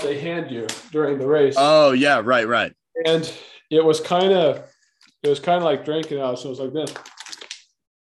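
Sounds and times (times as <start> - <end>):
speech: 0.0 - 7.1
flimsy plastic water bottle being crushed: 6.8 - 7.7.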